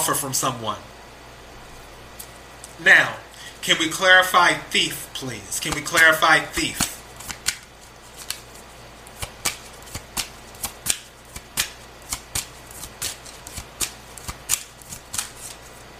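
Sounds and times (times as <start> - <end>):
speech: 0.1 - 1.0, 2.8 - 6.9
tarot cards shuffling: 5.6 - 15.9.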